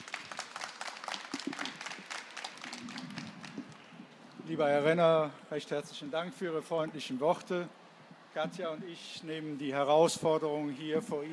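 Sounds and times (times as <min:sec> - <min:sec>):
audience applause welcoming guests: 0:00.0 - 0:03.8
speech: 0:04.5 - 0:07.8, 0:08.4 - 0:11.3.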